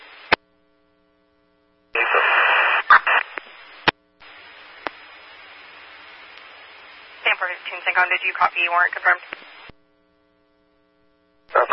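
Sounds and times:
heavy radio static: 2.0 - 9.7, 11.5 - 11.7
speech: 7.7 - 9.5.

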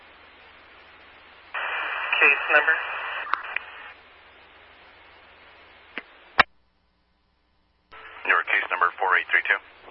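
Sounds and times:
radio static: 1.5 - 4.0, 7.9 - 9.9
speech: 2.2 - 3.0.

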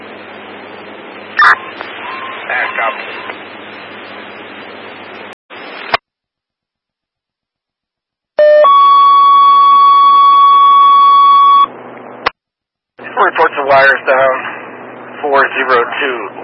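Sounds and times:
radio static: 0.2 - 6.0, 13.0 - 16.4
fire dispatch alert tone: 1.4 - 3.9, 8.4 - 11.7
speech: 1.4 - 4.0, 13.8 - 14.5, 15.6 - 16.4.

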